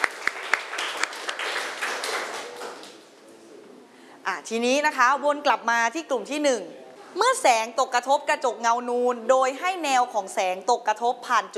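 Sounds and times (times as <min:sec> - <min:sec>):
applause from a small group: 0:00.0 - 0:03.0
speech: 0:04.4 - 0:11.5.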